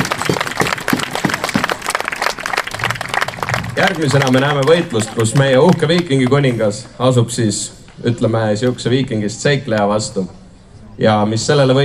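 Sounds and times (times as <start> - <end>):
audience applause: 0.0 - 6.6
speech: 3.8 - 10.4, 11.0 - 11.8.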